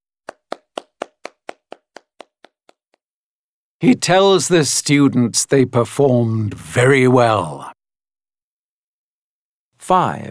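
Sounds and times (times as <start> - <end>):
one person clapping hands: 0.0 - 3.0
speech: 3.8 - 7.7, 9.9 - 10.2.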